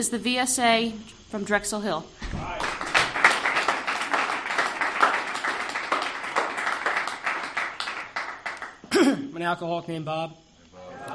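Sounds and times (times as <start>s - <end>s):
speech: 0.0s - 2.8s, 9.4s - 10.4s
audience applause at a recovery group meeting: 2.4s - 8.9s.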